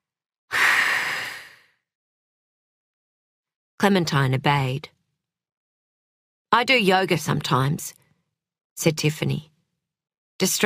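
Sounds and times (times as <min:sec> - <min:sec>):
whooshing breath out through the mouth: 0:00.5 - 0:01.7
speech: 0:03.8 - 0:05.0, 0:06.5 - 0:08.0, 0:08.8 - 0:09.5, 0:10.4 - 0:10.6.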